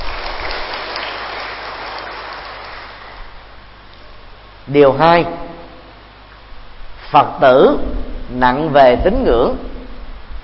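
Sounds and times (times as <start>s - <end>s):
audience applause: 0.0s - 3.3s
speech: 4.7s - 5.4s, 7.1s - 9.7s.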